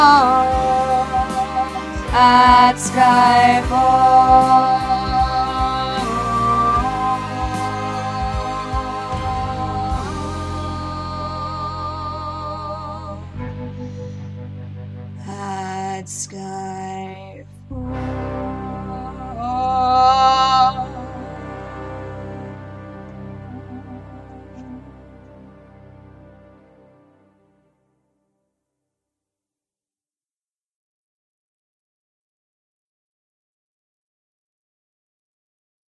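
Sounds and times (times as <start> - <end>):
tenor singing: 0.0 - 13.4, 15.2 - 26.1.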